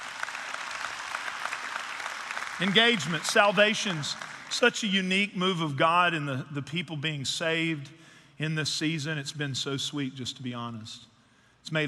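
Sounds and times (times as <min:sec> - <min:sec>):
crowd clapping: 0:00.0 - 0:05.0
speech: 0:02.6 - 0:11.8.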